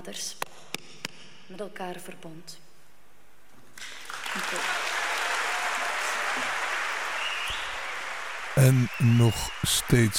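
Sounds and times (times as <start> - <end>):
speech: 0.1 - 0.4, 1.5 - 2.6, 4.4 - 4.9, 8.6 - 10.1
large audience applauding: 3.8 - 10.1.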